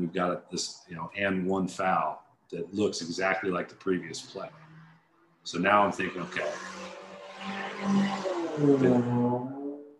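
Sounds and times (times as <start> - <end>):
speech: 0.1 - 4.7, 5.4 - 9.5
motorcycle engine passing: 4.0 - 9.9.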